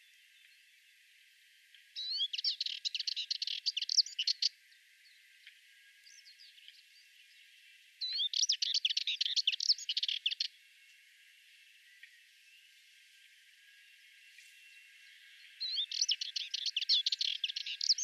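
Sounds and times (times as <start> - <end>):
Sardinian warbler singing: 2.0 - 10.6, 13.8 - 18.0.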